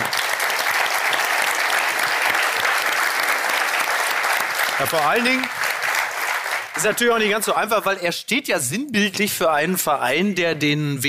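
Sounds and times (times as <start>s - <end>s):
audience applause: 0.0s - 7.7s
speech: 4.8s - 5.6s, 6.8s - 11.0s.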